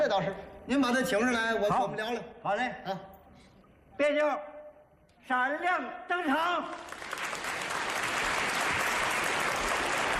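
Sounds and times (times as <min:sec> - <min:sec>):
speech: 0:00.0 - 0:03.1, 0:04.0 - 0:04.5, 0:05.2 - 0:07.0
audience applause at a live comic performance: 0:06.7 - 0:10.1.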